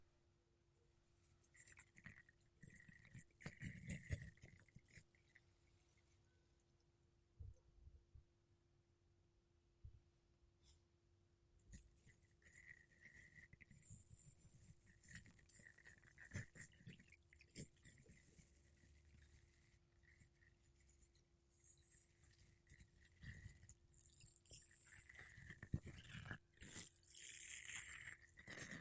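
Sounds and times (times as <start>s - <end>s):
makeup brushes and a sponge rubbing a microphone: 1.3s - 6.1s, 11.7s - 28.7s.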